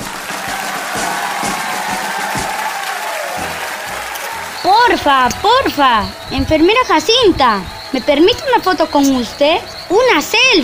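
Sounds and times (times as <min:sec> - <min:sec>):
loud applause: 0:00.0 - 0:10.0
speech: 0:04.7 - 0:10.6.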